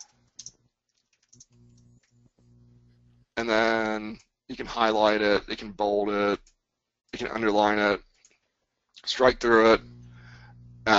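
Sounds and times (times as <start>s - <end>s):
fingers typing on a computer keyboard: 0.0s - 2.1s
speech: 3.4s - 6.5s, 7.1s - 8.1s, 9.0s - 10.0s.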